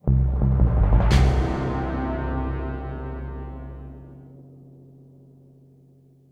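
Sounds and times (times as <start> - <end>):
music stinger: 0.0 - 4.4.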